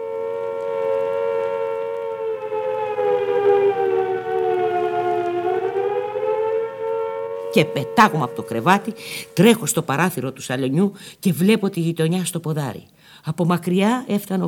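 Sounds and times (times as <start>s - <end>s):
air raid warning siren wailing: 0.0s - 10.8s
speech: 7.6s - 14.4s.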